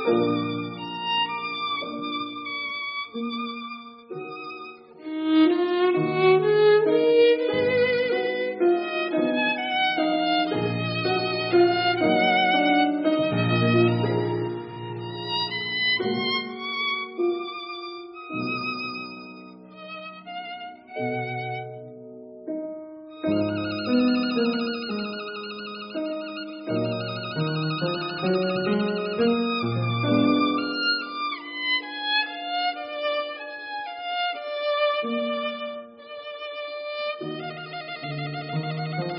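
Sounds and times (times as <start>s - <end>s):
violin: 0.0s - 39.1s.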